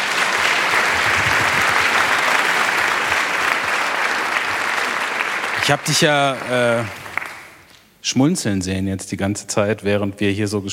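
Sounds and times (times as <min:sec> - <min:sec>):
audience applause: 0:00.0 - 0:07.6
speech: 0:05.6 - 0:07.0, 0:08.0 - 0:10.7.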